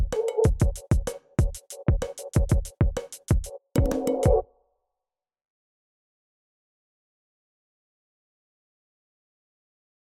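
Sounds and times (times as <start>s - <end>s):
chacarera music: 0.0s - 2.4s, 3.4s - 4.5s.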